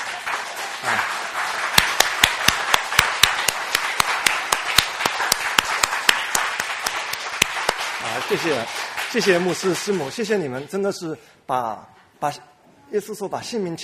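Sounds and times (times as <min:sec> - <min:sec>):
church congregation clapping in unison for their pastors: 0:00.0 - 0:10.8
speech: 0:08.2 - 0:13.8.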